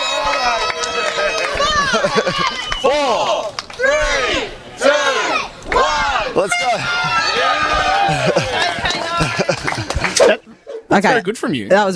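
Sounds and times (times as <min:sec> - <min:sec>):
audience clapping: 0:00.0 - 0:03.8, 0:07.7 - 0:10.2
audience cheering: 0:00.0 - 0:10.4
laughter: 0:01.2 - 0:03.5, 0:06.6 - 0:11.1
speech: 0:11.0 - 0:11.9.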